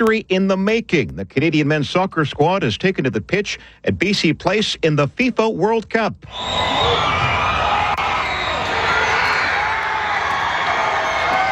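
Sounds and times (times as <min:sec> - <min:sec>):
speech: 0:00.0 - 0:07.6
football crowd roaring as Canada scores against Qatar: 0:06.3 - 0:11.5.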